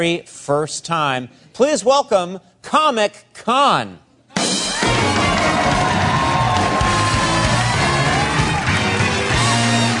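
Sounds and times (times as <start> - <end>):
speech: 0.0 - 4.0
large crowd cheering and applauding: 4.6 - 9.9.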